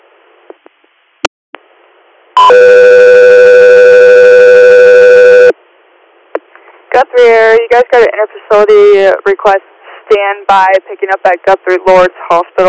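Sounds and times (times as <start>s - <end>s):
dispatch alert tones: 2.4s - 5.5s
speech: 2.5s - 3.0s, 7.0s - 12.6s.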